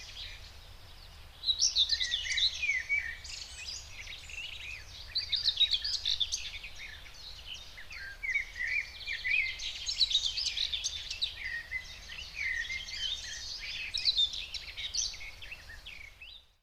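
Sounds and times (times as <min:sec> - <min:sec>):
common whitethroat singing in the Spreewald: 0:00.0 - 0:16.6.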